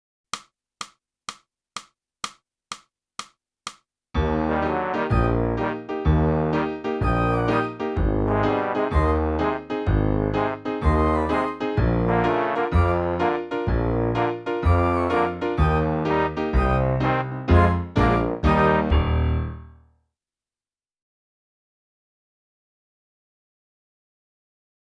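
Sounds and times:
clarinet: 4.4 - 19.1.

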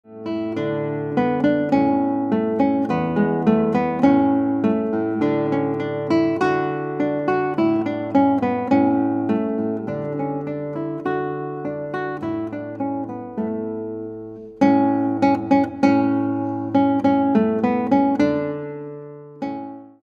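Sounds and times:
guitar: 0.0 - 20.0.

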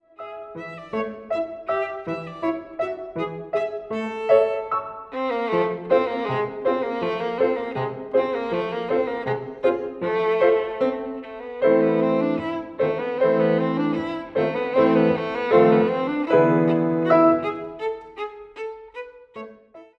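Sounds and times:
violin: 0.0 - 19.9.

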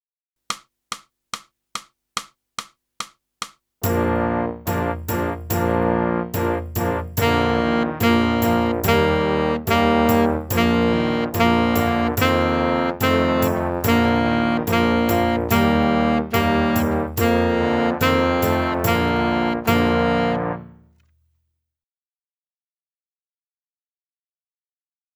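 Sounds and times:
saxophone: 3.8 - 20.8.

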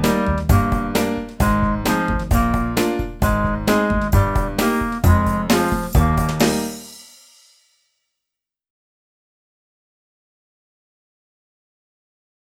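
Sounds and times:
clarinet: 0.0 - 6.4.

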